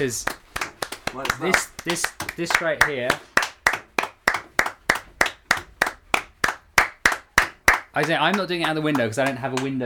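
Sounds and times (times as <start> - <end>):
speech: 0.0 - 0.4, 1.1 - 3.3, 8.0 - 9.8
people clapping: 0.0 - 9.8.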